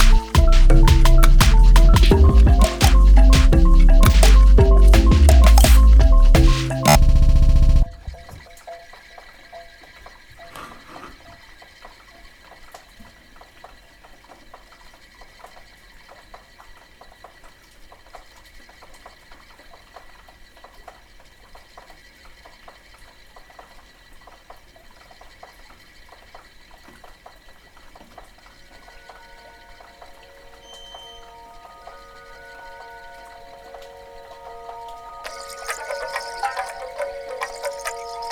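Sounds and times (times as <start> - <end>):
vinyl music mix: 0.0 - 8.4, 29.8 - 38.2.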